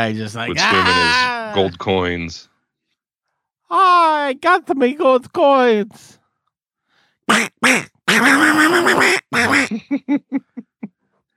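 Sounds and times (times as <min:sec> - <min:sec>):
speech: 0:00.0 - 0:02.5, 0:03.7 - 0:06.2, 0:07.3 - 0:10.7
laughter: 0:00.5 - 0:01.8, 0:09.5 - 0:10.9
voice imitating a cartoon duck: 0:00.6 - 0:01.8, 0:07.3 - 0:09.7.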